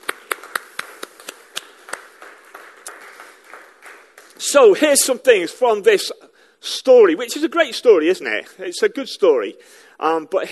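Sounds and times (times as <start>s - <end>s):
small audience clapping: 0.0s - 4.8s
speech: 4.4s - 10.5s.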